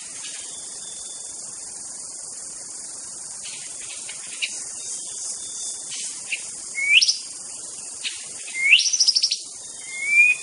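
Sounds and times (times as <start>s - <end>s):
White-rumped shama song of fluty whistles in a forest: 6.7s - 7.3s, 8.5s - 10.4s.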